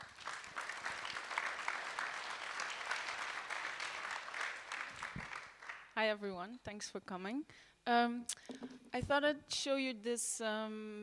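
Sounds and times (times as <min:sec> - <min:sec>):
audience applause welcoming an artist and teacher at a talk: 0:00.0 - 0:05.9
speech: 0:06.0 - 0:11.0.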